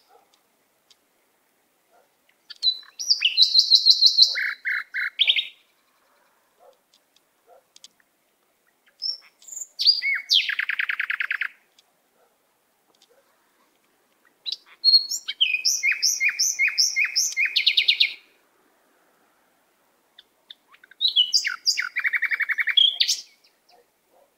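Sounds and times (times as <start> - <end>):
canary singing whistled notes and trills: 2.3 - 6.0, 8.7 - 11.6, 14.2 - 18.3, 20.2 - 23.8.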